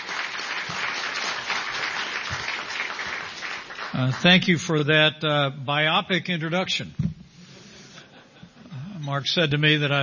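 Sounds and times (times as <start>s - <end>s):
audience applause: 0.0s - 4.4s
speech: 4.0s - 7.0s, 9.0s - 10.0s.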